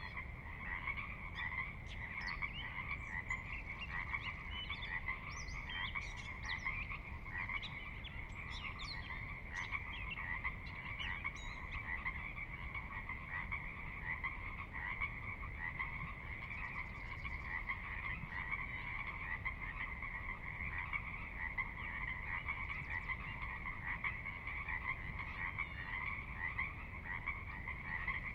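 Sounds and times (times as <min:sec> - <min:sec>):
Pacific Chorus Frog chorus: 0:00.0 - 0:28.3.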